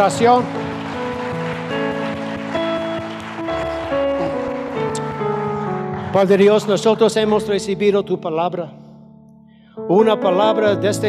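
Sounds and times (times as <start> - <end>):
speech: 0.0 - 0.7, 6.1 - 8.8, 9.8 - 11.0
loud applause: 0.0 - 7.1
sustained keyboard chords: 0.0 - 11.0.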